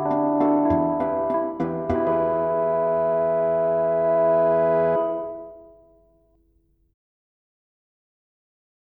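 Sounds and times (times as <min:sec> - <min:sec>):
backing track: 0:00.0 - 0:06.1.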